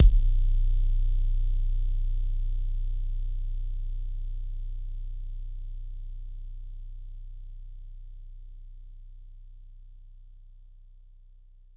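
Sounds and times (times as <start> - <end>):
bass drum kicks: 0.0 - 7.3.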